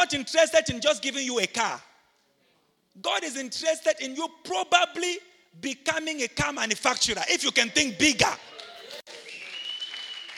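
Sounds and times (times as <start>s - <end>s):
speech: 0.0s - 1.9s, 3.0s - 8.6s
audience clapping: 8.4s - 10.3s.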